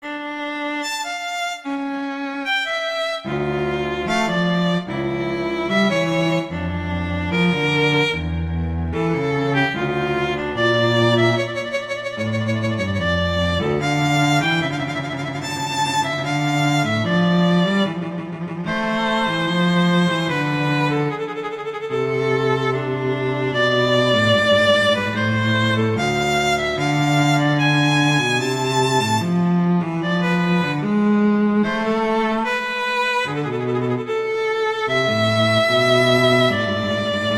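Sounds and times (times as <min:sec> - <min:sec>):
slow classical piece: 0:00.0 - 0:37.3.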